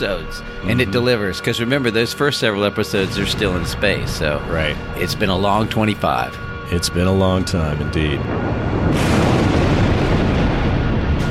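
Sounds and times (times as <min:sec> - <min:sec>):
speech: 0:00.0 - 0:09.2
rumbling explosions of imploding planet shockwave: 0:03.0 - 0:11.3.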